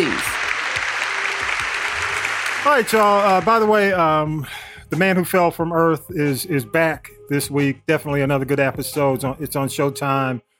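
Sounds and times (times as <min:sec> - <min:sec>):
applause: 0:00.0 - 0:04.1
speech: 0:02.6 - 0:10.5.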